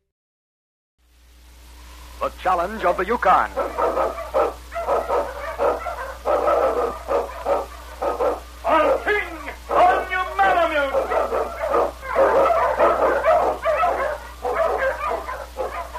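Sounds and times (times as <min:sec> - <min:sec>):
speech: 0:02.2 - 0:04.4
sled dog barking and yipping: 0:02.8 - 0:15.9
sled dog howl-like whines: 0:03.6 - 0:09.1, 0:10.9 - 0:15.9.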